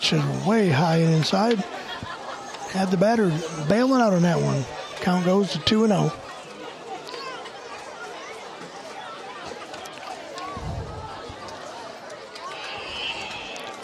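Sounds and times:
crowd chatter at a little league game: 0:00.0 - 0:13.8
speech: 0:00.1 - 0:01.9, 0:02.7 - 0:06.2
laughter: 0:01.3 - 0:04.0
higher calls: 0:12.5 - 0:13.8.

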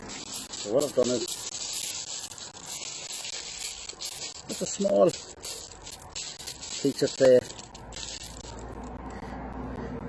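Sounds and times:
small piece of tin foil crinkling as it is handled: 0:00.0 - 0:08.8
speech: 0:00.6 - 0:01.5, 0:04.6 - 0:05.3, 0:06.8 - 0:07.4.

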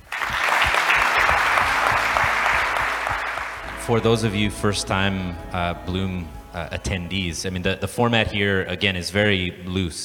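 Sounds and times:
crowd applause: 0:00.0 - 0:06.0
speech: 0:03.9 - 0:10.0.

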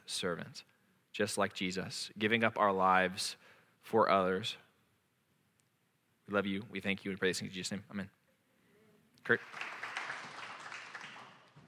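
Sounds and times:
speech: 0:00.1 - 0:04.6, 0:06.3 - 0:08.2, 0:09.2 - 0:09.7
faint applause: 0:09.3 - 0:11.6.

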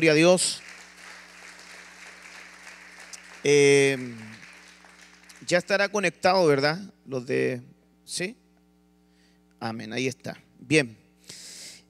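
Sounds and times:
speech: 0:00.0 - 0:00.7, 0:03.4 - 0:04.4, 0:05.4 - 0:08.4, 0:09.6 - 0:11.0
audience applauding: 0:00.0 - 0:05.8.

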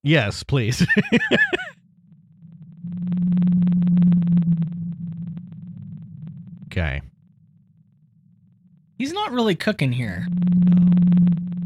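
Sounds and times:
speech: 0:00.0 - 0:01.8, 0:06.8 - 0:07.1, 0:09.0 - 0:10.8
laughter: 0:00.7 - 0:01.7
blue whale song: 0:01.8 - 0:09.0, 0:10.2 - 0:11.6.

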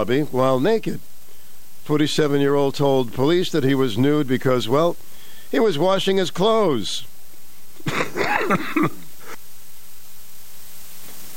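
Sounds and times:
speech: 0:00.0 - 0:01.1, 0:01.9 - 0:07.1, 0:07.8 - 0:09.0
person coughing: 0:07.8 - 0:09.1.

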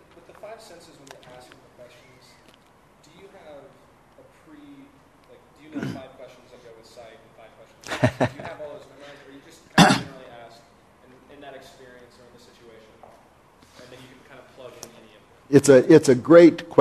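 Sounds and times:
speech: 0:00.6 - 0:02.5, 0:03.1 - 0:16.7
man clearing throat: 0:05.7 - 0:06.1, 0:09.8 - 0:10.2
laughter: 0:07.8 - 0:08.8.

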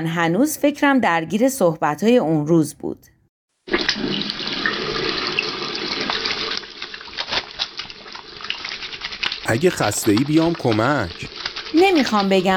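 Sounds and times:
speech: 0:00.0 - 0:03.1, 0:09.5 - 0:12.5
tap water running while rinsing dishes: 0:03.6 - 0:12.5.

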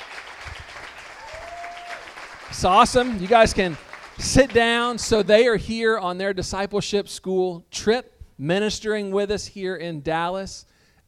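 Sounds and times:
audience clapping: 0:00.0 - 0:05.5
speech: 0:02.5 - 0:11.0.

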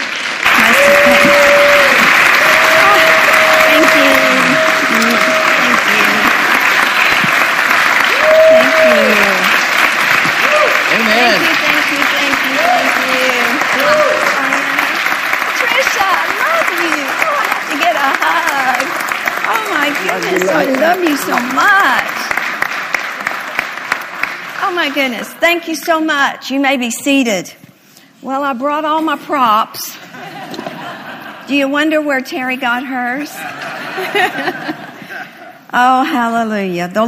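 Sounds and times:
audience applause welcoming a speaker: 0:00.0 - 0:25.4, 0:33.4 - 0:35.1
laughter: 0:00.5 - 0:01.8, 0:17.7 - 0:18.9, 0:30.1 - 0:31.7, 0:33.2 - 0:35.7
speech: 0:25.0 - 0:27.6, 0:28.2 - 0:30.0, 0:31.5 - 0:34.8, 0:35.7 - 0:37.0.

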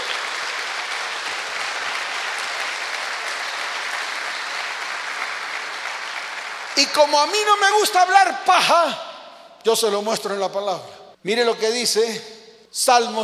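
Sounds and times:
sustained audience applause: 0:00.0 - 0:07.5
speech: 0:06.8 - 0:13.2.

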